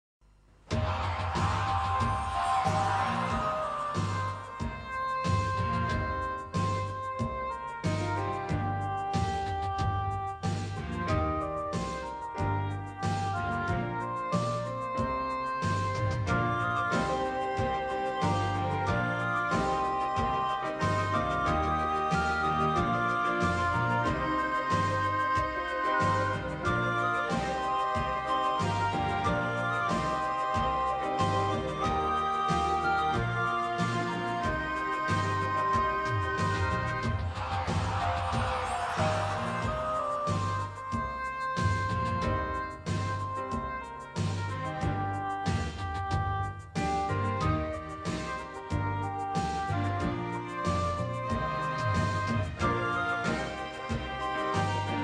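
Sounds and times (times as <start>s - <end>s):
instrumental music: 0.5s - 55.0s.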